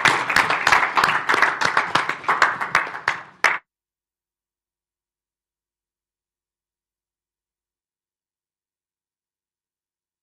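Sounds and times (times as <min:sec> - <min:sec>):
audience applause: 0:00.0 - 0:03.6.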